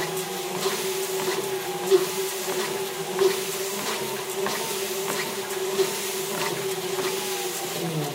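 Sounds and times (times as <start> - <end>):
walking on a treadmill: 0.0 - 8.0.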